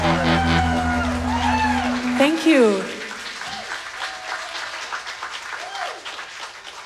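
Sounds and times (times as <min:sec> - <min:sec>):
cheers and whoops: 0:00.0 - 0:02.8, 0:03.4 - 0:04.8, 0:05.5 - 0:06.1
crowd applauding after a live performance: 0:00.0 - 0:06.8
speech: 0:02.2 - 0:02.9.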